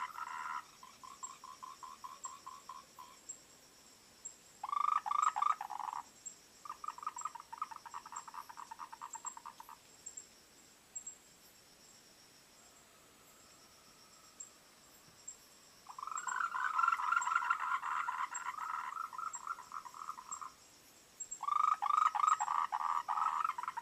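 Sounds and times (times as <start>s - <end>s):
frogs calling in a dense chorus of overlapping croaks: 0.0s - 3.4s, 4.6s - 10.2s, 12.5s - 23.7s.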